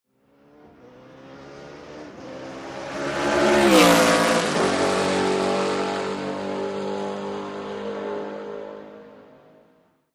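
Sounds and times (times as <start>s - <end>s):
sports car passing by fast: 0.3s - 9.8s.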